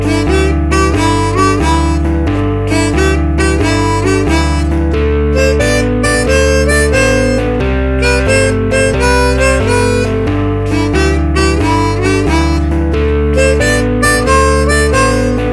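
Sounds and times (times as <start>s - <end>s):
blues music at 90 bpm: 0.0s - 15.5s.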